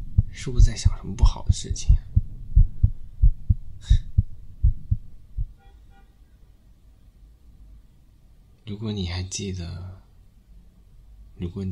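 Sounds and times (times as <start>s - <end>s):
fast pounding heartbeat: 0.0s - 5.6s
speech: 0.4s - 2.1s, 8.7s - 10.0s, 11.4s - 11.7s.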